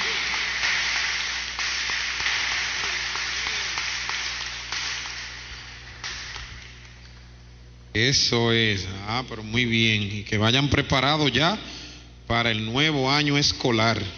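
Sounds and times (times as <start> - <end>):
applause for children: 0.0 - 7.1
speech: 8.0 - 14.1.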